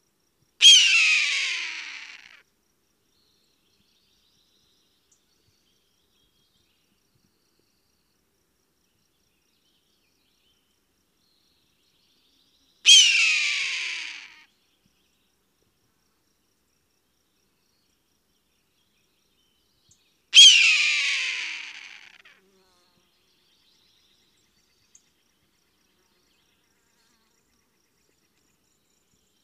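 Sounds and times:
hawk giving a harsh hoarse scream: 0:00.6 - 0:02.4, 0:12.9 - 0:14.4, 0:20.4 - 0:22.3.

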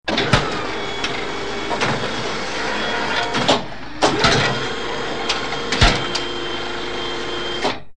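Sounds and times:
small x-ray machines: 0:00.1 - 0:07.8.

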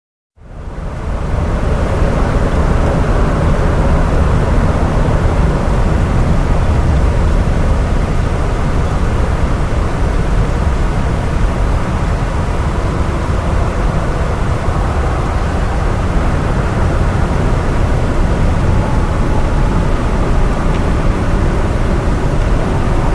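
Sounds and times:
cathedral room tone air: 0:00.4 - 0:23.1.

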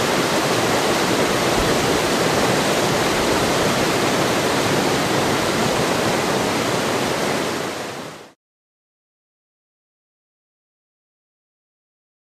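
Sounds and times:
large fast-running river: 0:00.0 - 0:08.4.

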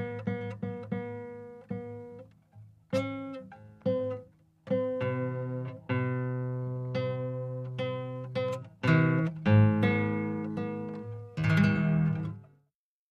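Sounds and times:
acoustic guitar tuning: 0:00.0 - 0:12.6.

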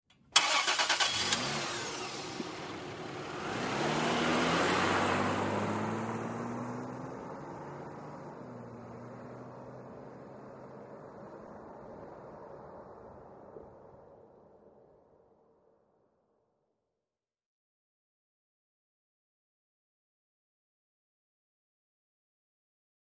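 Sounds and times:
SUV engine accelerating: 0:00.4 - 0:13.3.

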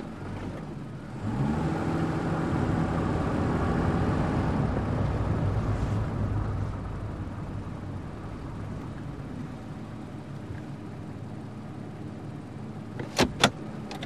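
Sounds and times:
SUV engine accelerating: 0:00.2 - 0:13.9.

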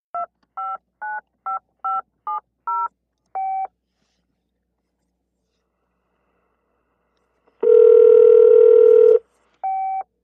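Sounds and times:
cell phone inline touch tone dialing: 0:07.6 - 0:10.0.

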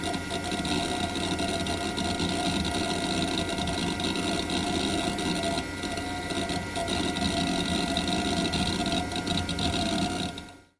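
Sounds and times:
PC computer heavy reading: 0:00.0 - 0:10.7.

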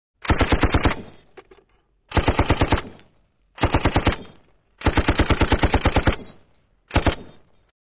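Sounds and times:
M-60 automatic machine gun bursts: 0:00.2 - 0:01.2, 0:02.1 - 0:03.0, 0:03.6 - 0:06.3, 0:06.9 - 0:07.5.

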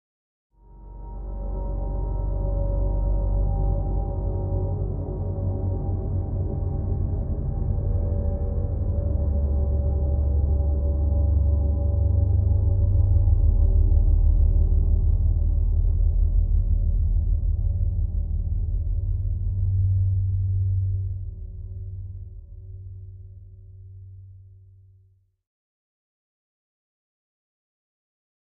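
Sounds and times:
galactic drone bed: 0:00.6 - 0:22.7.

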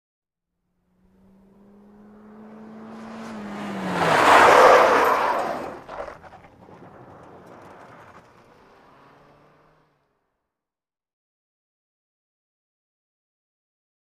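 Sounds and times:
compact small car revving and skidding through 180 degrees: 0:00.8 - 0:10.1.

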